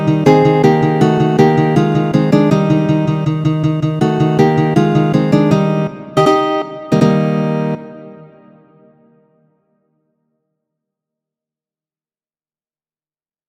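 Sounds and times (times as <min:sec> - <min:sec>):
andante piece: 0:00.0 - 0:08.9.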